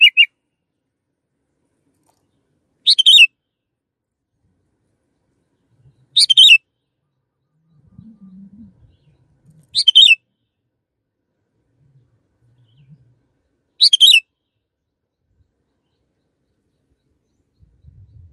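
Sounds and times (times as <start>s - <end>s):
canary chirping: 0.0s - 0.3s, 2.8s - 3.3s, 6.2s - 6.6s, 9.7s - 10.2s, 13.8s - 14.2s.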